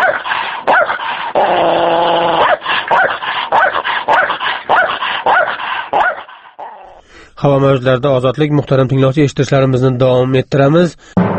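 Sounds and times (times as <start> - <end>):
stray dogs barking: 0.0 - 7.0
speech: 7.4 - 11.2.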